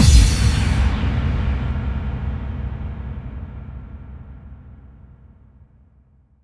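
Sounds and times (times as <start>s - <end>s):
bass drum FX kicks: 0.0s - 4.1s.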